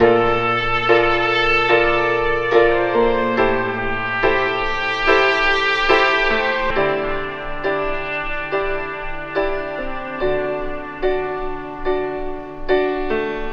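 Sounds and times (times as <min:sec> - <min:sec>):
sad piano loop: 0:00.0 - 0:13.5.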